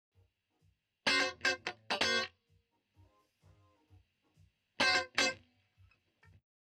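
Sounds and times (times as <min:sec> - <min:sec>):
guitar: 0:01.0 - 0:03.9, 0:04.8 - 0:06.4.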